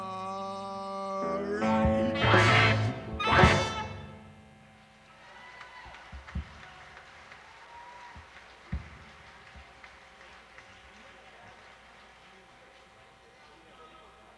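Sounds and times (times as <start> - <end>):
reggae music: 0.0 - 4.4.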